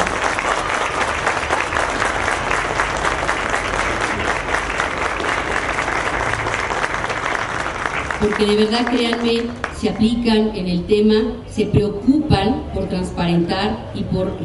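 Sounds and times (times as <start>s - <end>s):
audience applause: 0.0s - 9.8s
speech: 8.2s - 14.4s.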